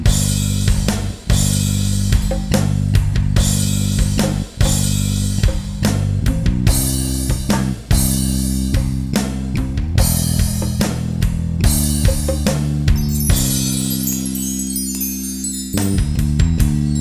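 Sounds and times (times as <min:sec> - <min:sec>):
bass guitar: 0:00.0 - 0:16.9.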